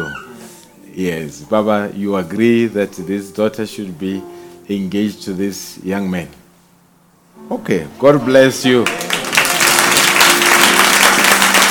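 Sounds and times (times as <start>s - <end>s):
speech: 1.0s - 6.4s, 7.4s - 9.1s
audience applause: 8.7s - 11.6s.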